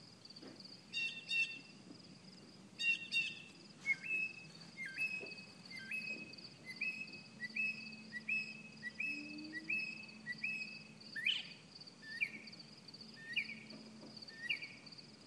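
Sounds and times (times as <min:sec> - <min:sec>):
birds chirping: 0:02.8 - 0:14.9.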